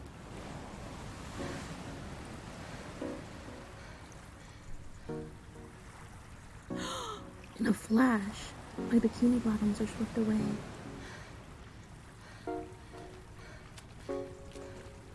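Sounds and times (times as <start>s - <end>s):
ocean waves: 0.0s - 15.1s
speech: 7.6s - 10.7s.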